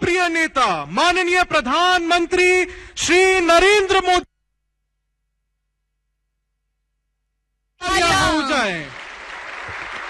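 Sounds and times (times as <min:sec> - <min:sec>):
speech: 0:00.2 - 0:04.3, 0:07.8 - 0:09.0
audience applause: 0:07.9 - 0:10.0.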